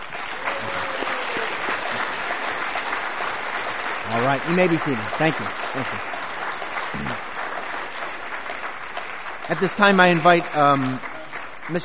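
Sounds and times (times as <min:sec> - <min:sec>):
audience applause: 0:00.0 - 0:11.8
speech: 0:04.1 - 0:06.2, 0:06.9 - 0:07.3, 0:09.5 - 0:11.1, 0:11.7 - 0:11.8.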